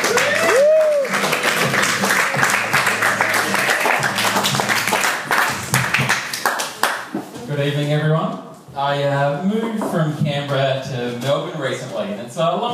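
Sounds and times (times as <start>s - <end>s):
audience applause: 0.0s - 7.1s
speech: 7.6s - 12.7s.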